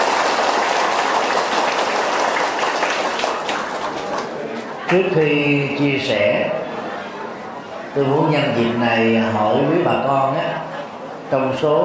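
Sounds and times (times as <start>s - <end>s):
audience applause: 0.0s - 4.5s
speech: 4.9s - 6.6s, 7.9s - 10.7s, 11.3s - 11.8s.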